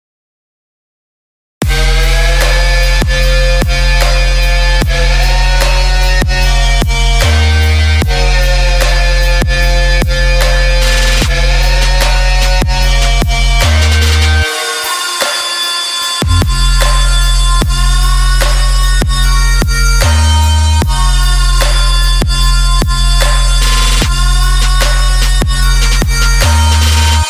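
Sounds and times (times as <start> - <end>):
new-age contemporary neuro folk disco music: 1.7 - 27.2.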